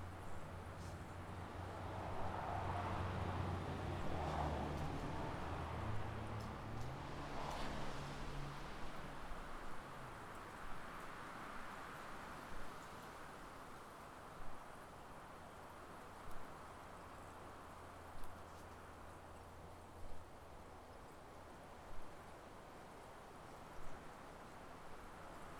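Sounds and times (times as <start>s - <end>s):
wind in the country: 0.0s - 25.5s
car passing in the country: 0.8s - 10.0s.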